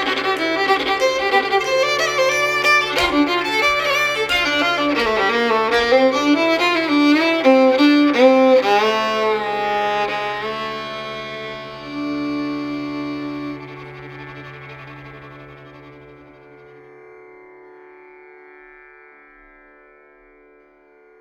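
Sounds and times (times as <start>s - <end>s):
folk tune performance with variation: 0.0s - 16.6s.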